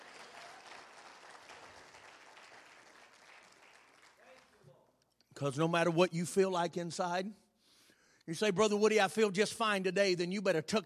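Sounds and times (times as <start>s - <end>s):
audience clapping hands: 0.0s - 4.7s
speech: 5.4s - 7.4s, 8.3s - 10.8s.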